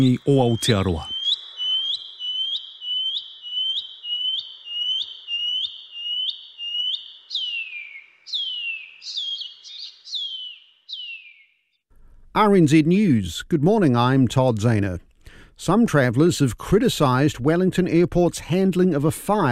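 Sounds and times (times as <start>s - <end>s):
speech: 0.0s - 1.1s, 12.4s - 19.4s
shining cuckoo call: 0.0s - 11.6s.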